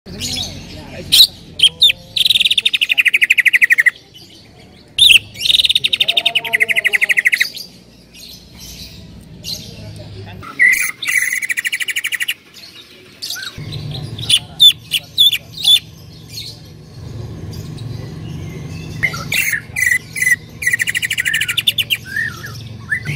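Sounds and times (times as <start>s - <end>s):
bird singing: 0.1s - 23.1s.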